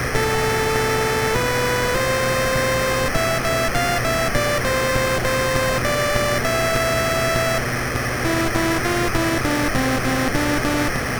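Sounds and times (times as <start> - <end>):
drums on a MOS6581R3 sound chip: 0.2 - 11.0.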